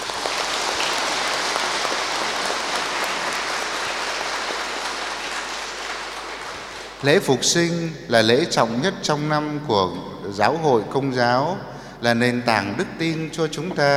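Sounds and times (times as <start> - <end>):
audience applauding: 0.0 - 7.3
speech: 7.0 - 13.9.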